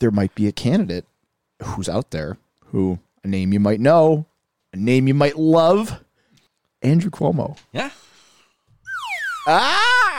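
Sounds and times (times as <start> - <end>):
speech: 0.0 - 6.0, 6.8 - 8.1, 9.5 - 10.1
buzzy comic tone: 8.8 - 10.1
slide whistle sound effect: 8.8 - 10.1.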